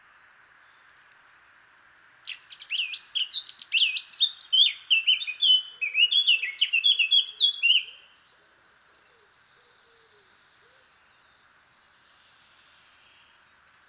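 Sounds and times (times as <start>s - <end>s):
Eurasian blackcap singing: 2.3s - 8.0s.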